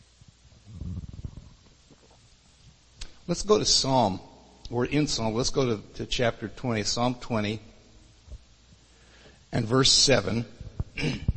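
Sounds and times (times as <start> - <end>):
person sipping a drink: 0.6 - 2.3
speech: 3.3 - 7.7, 9.5 - 11.3.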